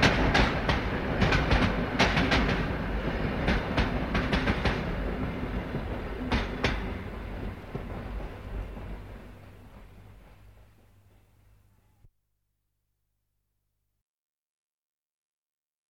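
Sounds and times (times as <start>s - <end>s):
train arriving at a station: 0.0s - 12.1s.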